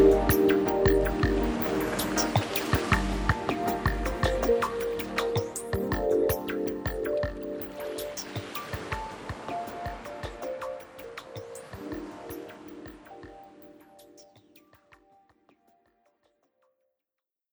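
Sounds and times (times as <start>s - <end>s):
ocean water: 0.0s - 14.0s.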